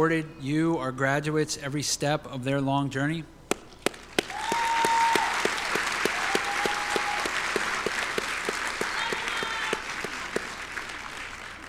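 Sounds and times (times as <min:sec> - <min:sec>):
speech: 0:00.0 - 0:03.4
audience applause: 0:03.9 - 0:11.6.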